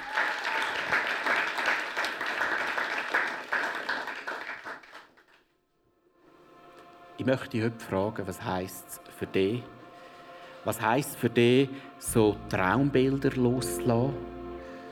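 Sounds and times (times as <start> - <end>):
audience applause: 0.0 - 5.4
speech: 7.2 - 9.8, 10.6 - 14.3.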